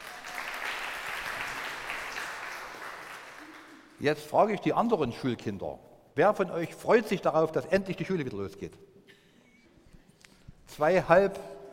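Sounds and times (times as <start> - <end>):
applause: 0.0 - 4.0
speech: 4.0 - 8.9, 10.8 - 11.5.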